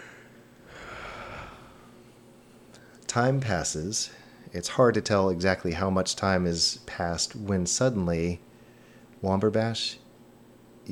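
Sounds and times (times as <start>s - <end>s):
man yawning while lying down in bed: 0.0s - 1.9s
speech: 3.1s - 8.5s, 9.2s - 10.0s.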